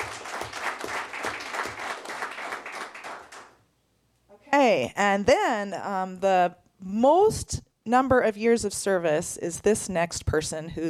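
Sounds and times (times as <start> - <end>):
audience applause: 0.0 - 3.6
speech: 4.6 - 10.8.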